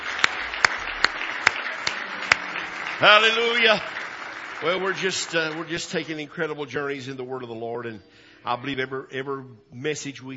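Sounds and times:
audience clapping hands in praise: 0.0 - 6.4
noise: 0.0 - 10.3
speech: 3.0 - 4.0, 4.6 - 10.3.

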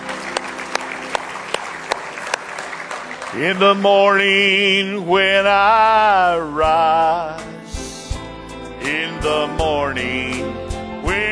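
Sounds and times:
audience hand clapping: 0.0 - 5.1
speech: 3.3 - 7.6, 8.8 - 11.3.

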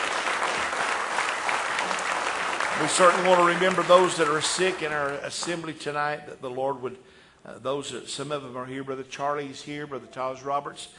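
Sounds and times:
standing church congregation clapping in praise during an evening service: 0.0 - 6.0
speech: 2.8 - 10.9.

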